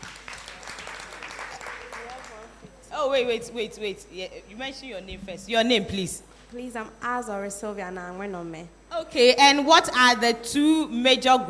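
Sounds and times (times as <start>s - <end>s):
audience clapping at a toothpaste promotion event: 0.0s - 2.7s
speech: 3.0s - 11.4s.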